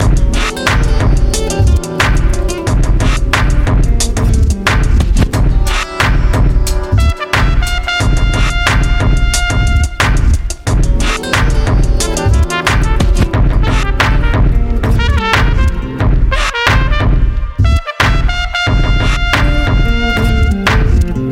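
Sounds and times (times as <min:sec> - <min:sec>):
jazz music: 0:00.0 - 0:21.3.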